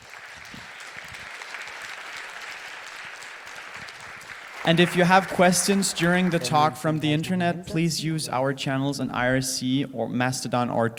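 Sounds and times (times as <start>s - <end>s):
audience applause: 0.0s - 6.8s
speech: 4.6s - 10.9s.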